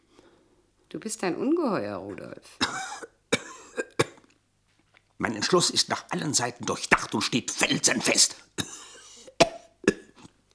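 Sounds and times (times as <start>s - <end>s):
speech: 0.9s - 3.1s, 5.2s - 8.6s
man coughing: 2.6s - 4.2s, 8.6s - 10.2s.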